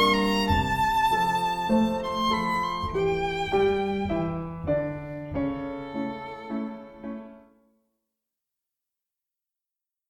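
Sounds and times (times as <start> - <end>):
duo playing a romance in F: 0.0 - 7.4.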